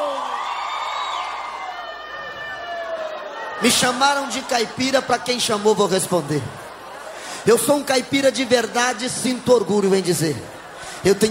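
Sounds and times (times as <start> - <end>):
crowd shouting and whooping: 0.0 - 8.0
speech: 3.6 - 6.6, 7.4 - 11.3.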